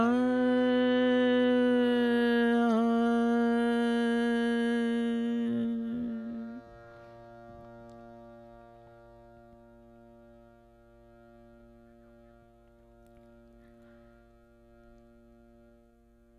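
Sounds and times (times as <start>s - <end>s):
vocals: 0.0s - 8.4s.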